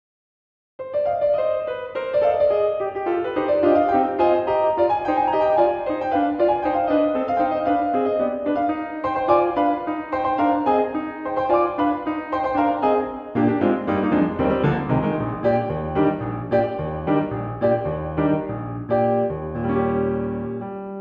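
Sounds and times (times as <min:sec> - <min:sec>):
solo piano improvisation: 0:00.8 - 0:20.9.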